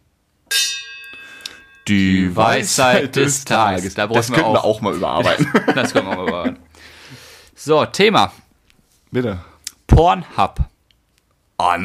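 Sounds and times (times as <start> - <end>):
small bell struck to introduce a segment: 0.5 - 1.9
speech: 1.9 - 6.6, 7.6 - 8.4, 9.1 - 10.7, 11.6 - 11.8
laughter: 2.4 - 6.7.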